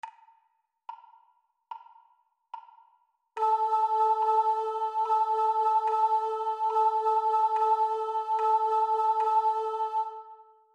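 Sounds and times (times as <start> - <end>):
high rhythm pattern: 3.4 - 10.2.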